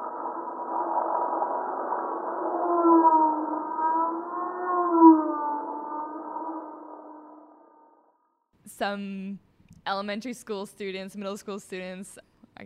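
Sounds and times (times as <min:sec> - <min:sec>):
sped-up recording of rock arch vibrations: 0:00.0 - 0:08.1
speech: 0:08.8 - 0:12.6.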